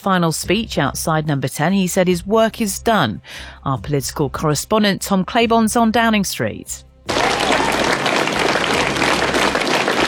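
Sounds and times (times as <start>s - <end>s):
speech: 0.0s - 6.9s
massive applause from a packed Downing Street crowd: 7.1s - 10.0s.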